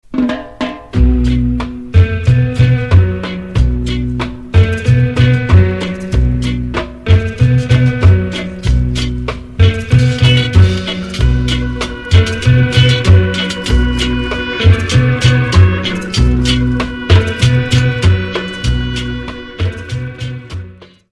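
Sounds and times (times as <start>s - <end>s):
rocksteady beat: 0.0s - 21.1s.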